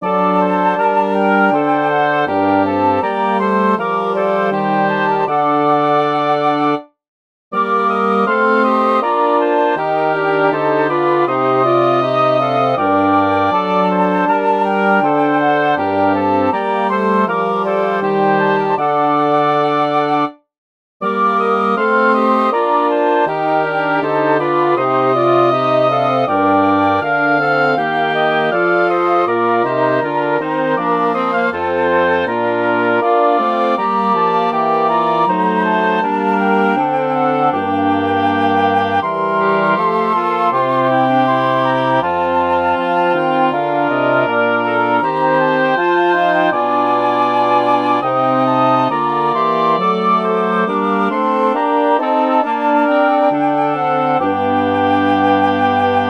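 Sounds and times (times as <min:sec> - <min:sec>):
wind quintet playing: 0:00.0 - 0:06.9, 0:07.6 - 0:20.4, 0:21.0 - 0:56.0.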